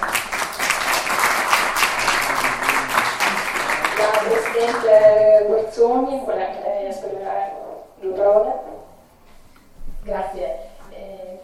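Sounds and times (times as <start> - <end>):
crowd applauding: 0.0 - 5.4
speech: 4.3 - 8.8, 10.1 - 10.6.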